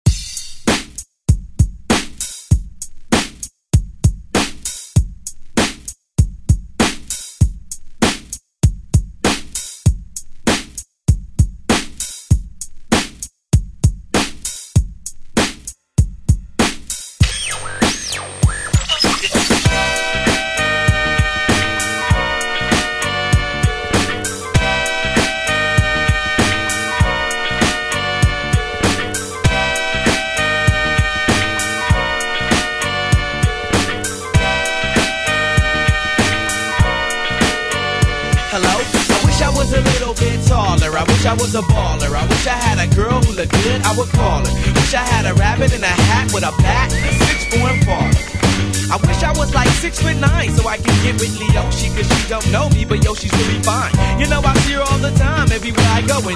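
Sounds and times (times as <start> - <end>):
90s drum beat: 0.0 - 56.3.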